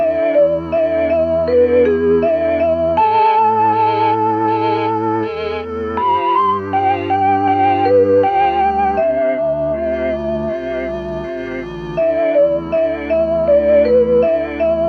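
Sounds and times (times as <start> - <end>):
mellotron music: 0.0 - 14.8.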